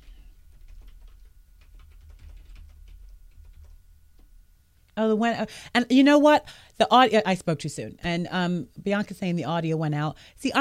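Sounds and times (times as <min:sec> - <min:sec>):
steady low hum: 0:00.0 - 0:10.5
soft typing on a computer keyboard: 0:00.1 - 0:04.3
speech: 0:05.0 - 0:10.5.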